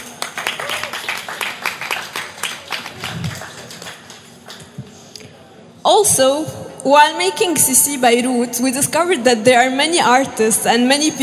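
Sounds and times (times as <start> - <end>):
audience clapping: 0.0 - 4.9
speech: 5.9 - 11.2.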